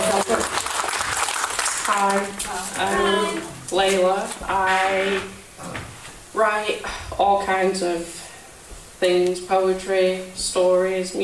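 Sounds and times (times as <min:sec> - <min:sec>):
audience clapping at a poetry and music reading: 0:00.0 - 0:03.5
speech: 0:01.9 - 0:05.4, 0:06.4 - 0:08.2, 0:09.0 - 0:11.2.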